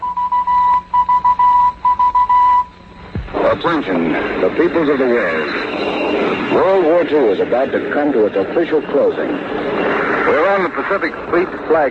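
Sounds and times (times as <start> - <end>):
Morse code for letter V: 0.0 - 2.9
speech: 3.5 - 11.8.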